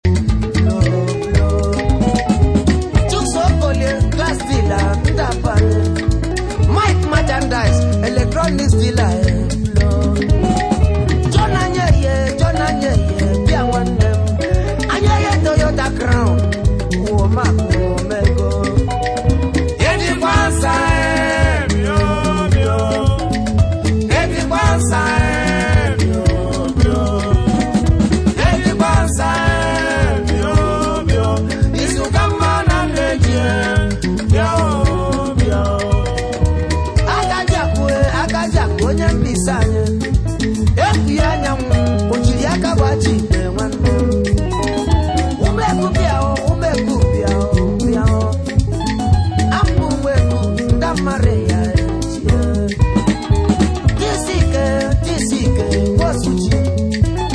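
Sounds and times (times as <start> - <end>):
guitar band playing: 0.0 - 57.3.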